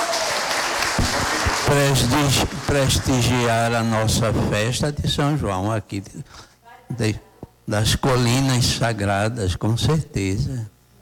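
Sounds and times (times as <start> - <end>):
audience applause: 0.0 - 3.6
speech: 1.7 - 10.7.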